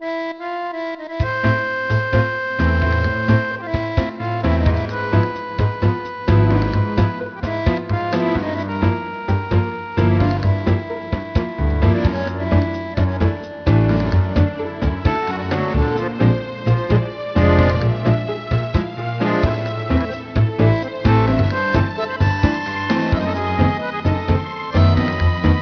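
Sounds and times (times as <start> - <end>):
tango music: 0.0 - 25.6.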